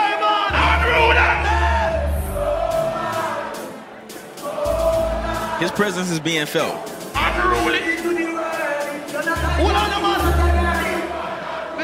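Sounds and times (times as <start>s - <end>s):
crowd cheering wildly: 0.0s - 11.8s
speech: 5.6s - 8.2s, 9.3s - 10.5s.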